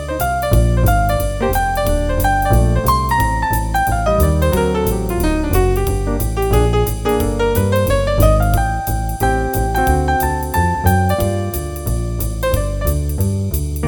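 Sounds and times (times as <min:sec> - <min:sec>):
jazz piano improvisation play-along: 0:00.0 - 0:13.8.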